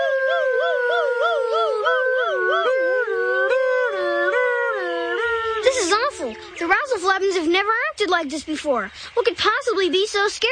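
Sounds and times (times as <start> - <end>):
voices imitating a siren: 0.0 - 7.5
speech: 7.0 - 10.5.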